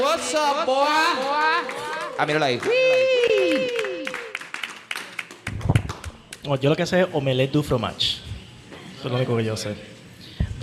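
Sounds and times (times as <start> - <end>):
speech: 0.0 - 3.9, 6.4 - 8.2, 9.0 - 10.0
audience applause: 0.8 - 6.2.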